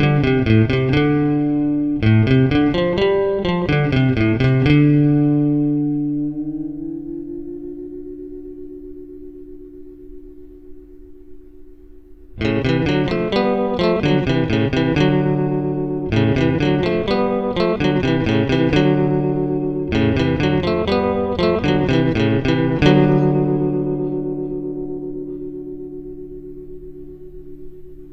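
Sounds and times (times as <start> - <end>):
instrument through octave reverb effect pedal, direct line recording: 0.0 - 28.1.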